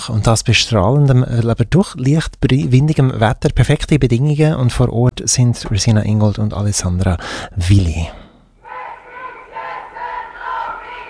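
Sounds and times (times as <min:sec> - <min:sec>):
speech: 0:00.0 - 0:08.2
crowd chanting at a feminist street demonstration: 0:08.6 - 0:11.0.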